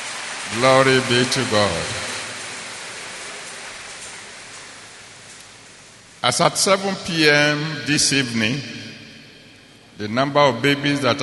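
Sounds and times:
crowd applauding: 0.0 - 5.3
speech: 0.5 - 2.0, 6.3 - 8.8, 10.0 - 11.2.

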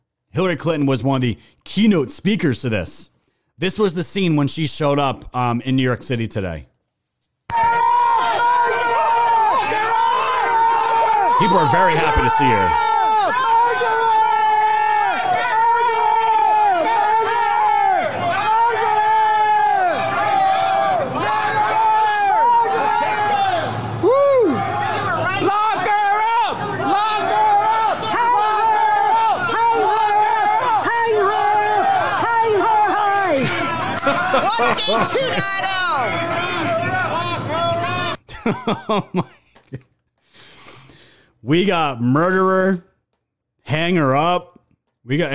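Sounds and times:
speech: 0.4 - 6.7, 11.4 - 12.9, 34.6 - 36.2, 38.5 - 39.8, 41.4 - 42.9, 43.7 - 45.3
crowd screaming: 7.5 - 39.0
crowd chanting: 15.1 - 38.1
laughter: 33.3 - 39.9.

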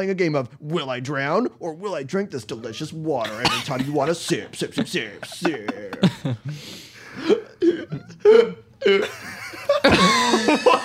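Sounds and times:
speech: 0.0 - 10.8
laughter: 3.1 - 10.8
person gasping for air: 5.9 - 8.6.

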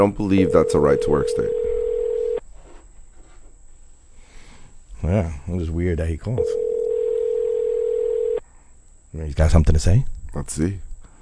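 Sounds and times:
speech: 0.0 - 1.6, 5.0 - 6.6, 9.2 - 10.9
telephone dial tone while calling a caller back: 0.5 - 2.4, 6.4 - 8.4.

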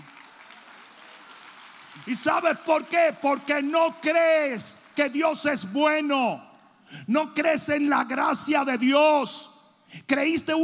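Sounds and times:
audience clapping: 0.0 - 5.7
speech: 2.0 - 10.6.

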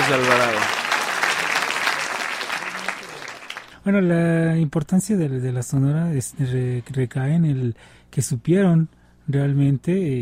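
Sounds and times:
audience applauding: 0.0 - 3.7
speech: 0.1 - 0.8, 3.9 - 10.2.

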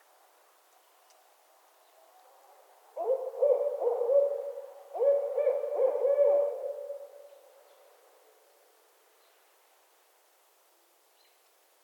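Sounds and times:
barred owl cackling hoots: 3.0 - 7.3.

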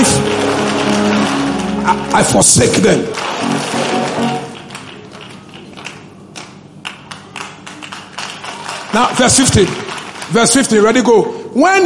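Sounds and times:
crowd clapping hands: 0.0 - 11.2
speech: 2.2 - 3.7, 9.0 - 11.8.

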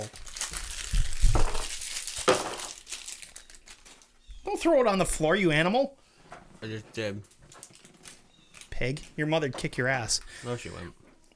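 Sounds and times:
food wrapper crinkling: 0.0 - 4.3, 7.2 - 9.2
speech: 4.6 - 6.0, 6.6 - 7.3, 8.8 - 11.0.

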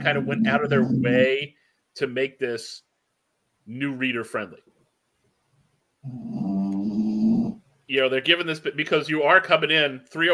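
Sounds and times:
bulldog snoring: 0.0 - 1.3, 6.0 - 7.6
speech: 0.0 - 2.9, 3.7 - 4.7, 6.0 - 6.5, 7.9 - 10.3.

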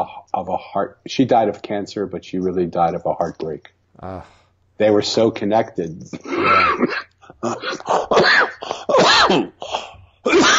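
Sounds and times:
speech: 0.0 - 10.5
coughing: 6.1 - 10.5.

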